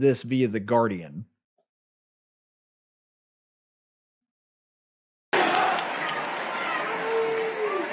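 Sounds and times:
speech: 0.0 - 1.3
crowd booing at a baseball game: 5.3 - 7.9.

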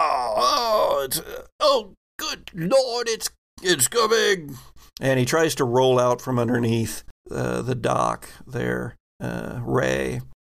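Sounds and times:
person's voice imitating a creature howling: 0.0 - 1.4
speech: 1.1 - 10.3.

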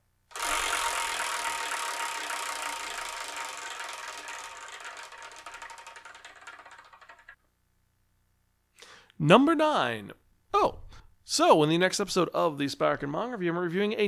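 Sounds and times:
prize wheel spinning to pick the next manga title: 0.3 - 7.4
speech: 9.2 - 10.6, 11.3 - 14.0.

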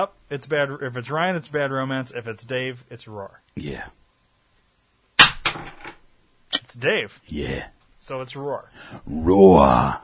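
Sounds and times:
speech: 0.0 - 4.0, 6.7 - 10.0
coin flipped and landing: 5.2 - 6.1.

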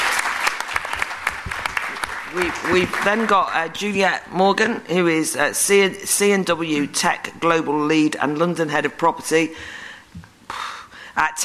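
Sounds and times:
audience applause welcoming a guest to a discussion panel: 0.0 - 3.8
speech: 2.3 - 9.8, 11.2 - 11.4.

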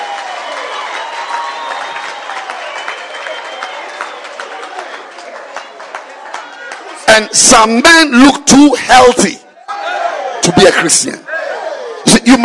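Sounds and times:
audience clapping: 0.0 - 7.4
speech: 7.2 - 9.4, 10.4 - 11.3, 12.0 - 12.4.

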